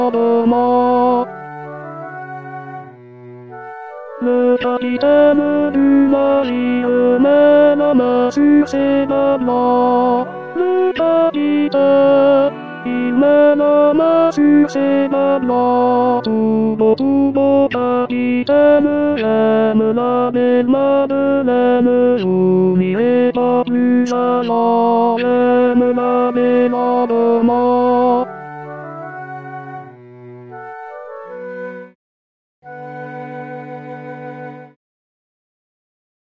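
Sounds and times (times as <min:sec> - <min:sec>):
tenor singing: 0:00.0 - 0:01.5, 0:04.2 - 0:28.4.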